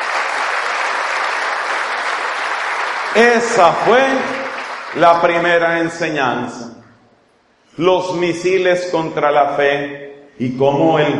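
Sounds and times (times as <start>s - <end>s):
crowd applauding: 0.0s - 5.6s
speech: 3.2s - 6.8s, 7.8s - 11.1s.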